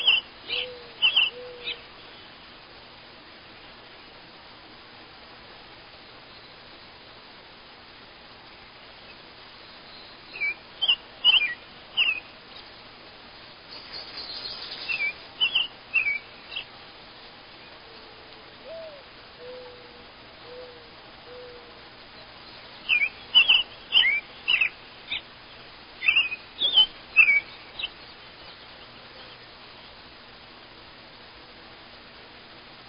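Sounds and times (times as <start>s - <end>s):
morning birds singing: 0.0s - 2.5s, 9.0s - 12.8s, 13.4s - 16.8s, 17.5s - 30.0s.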